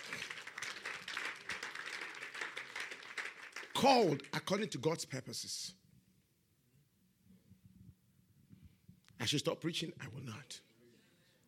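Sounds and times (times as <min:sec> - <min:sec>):
crowd clapping: 0:00.0 - 0:04.7
speech: 0:03.8 - 0:05.8, 0:09.3 - 0:10.7.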